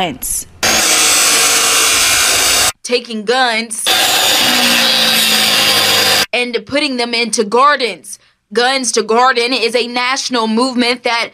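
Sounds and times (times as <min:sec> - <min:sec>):
speech: 0:00.0 - 0:00.5, 0:02.9 - 0:11.3
power saw cutting: 0:00.6 - 0:02.8, 0:03.8 - 0:06.3.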